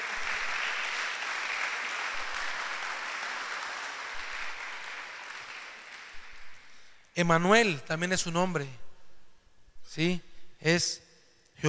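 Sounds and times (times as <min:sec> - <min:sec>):
applause: 0:00.0 - 0:07.4
speech: 0:07.2 - 0:08.8, 0:10.0 - 0:11.0.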